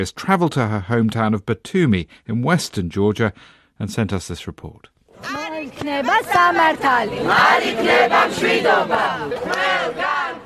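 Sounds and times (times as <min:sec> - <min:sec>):
speech: 0:00.0 - 0:10.1
protesters shouting outside court: 0:06.0 - 0:10.4.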